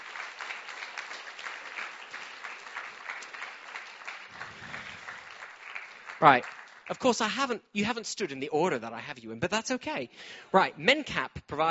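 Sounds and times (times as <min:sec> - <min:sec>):
audience applause: 0:00.0 - 0:07.3
speech: 0:06.2 - 0:11.6.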